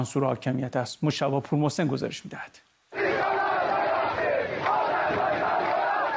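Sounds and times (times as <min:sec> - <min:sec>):
speech: 0:00.0 - 0:02.7
protest crowd shouting and chanting: 0:02.9 - 0:06.1.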